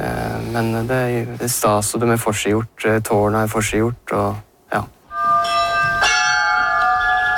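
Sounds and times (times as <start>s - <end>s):
speech: 0.5s - 5.0s
church tower bells ringing: 5.1s - 7.3s.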